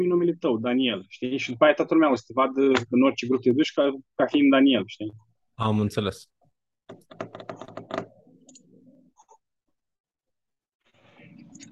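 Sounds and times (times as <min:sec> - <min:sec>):
speech: 0:00.0 - 0:06.3, 0:06.9 - 0:07.5
keystrokes on a computer keyboard typing a name in a Zoom meeting: 0:06.9 - 0:08.6.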